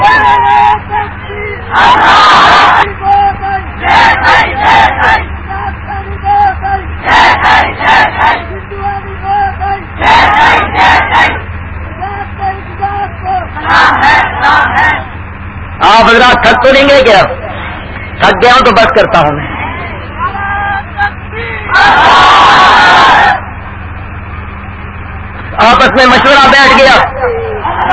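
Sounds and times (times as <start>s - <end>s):
crowd chanting a slogan: 0.0s - 27.9s
low hum: 0.0s - 27.9s
speech: 18.7s - 19.5s, 26.0s - 27.1s.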